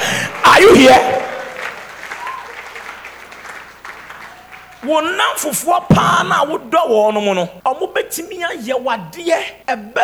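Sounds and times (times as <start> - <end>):
audience clapping: 0.0 - 5.2
speech: 0.6 - 1.1, 4.9 - 10.0.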